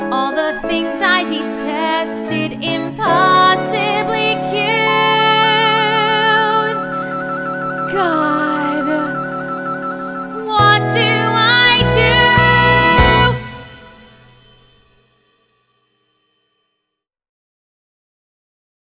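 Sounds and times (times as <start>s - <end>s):
person singing guide vocal: 0.0s - 14.2s.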